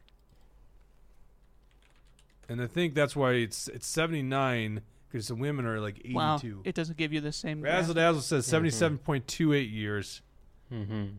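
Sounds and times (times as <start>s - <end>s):
typing on a computer keyboard: 0.0s - 0.5s, 1.4s - 2.5s
speech: 2.5s - 11.1s.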